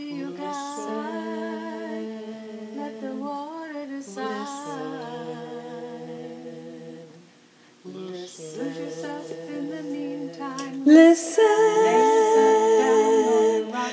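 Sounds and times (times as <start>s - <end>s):
soprano singing a song: 0.0s - 13.9s.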